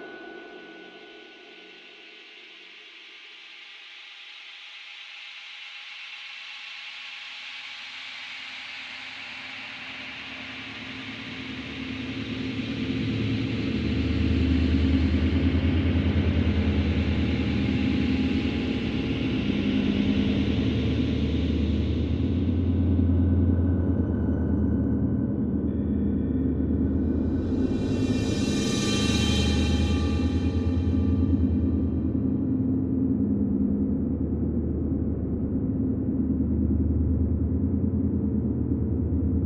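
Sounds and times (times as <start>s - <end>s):
eerie horror drone bed with swells: 9.7s - 39.4s.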